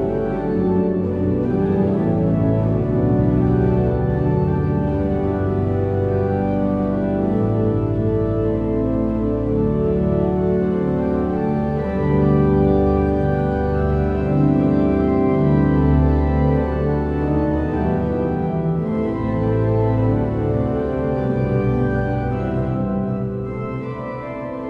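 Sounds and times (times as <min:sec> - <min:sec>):
pipe organ playing: 0:00.0 - 0:24.6.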